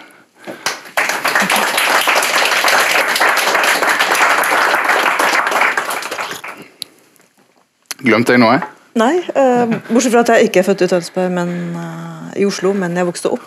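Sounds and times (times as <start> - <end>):
audience applause: 0.5 - 6.7
speech: 8.0 - 13.4.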